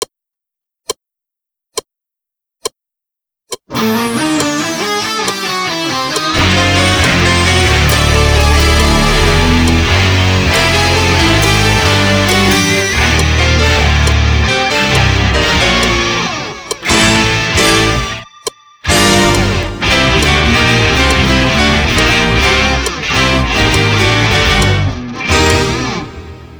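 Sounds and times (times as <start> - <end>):
slow music loop without drums: 3.7 - 26.5.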